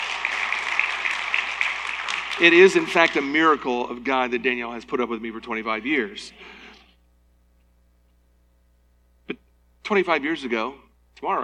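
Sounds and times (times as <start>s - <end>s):
audience applause: 0.0s - 3.8s
speech: 2.4s - 6.6s, 9.3s - 11.4s.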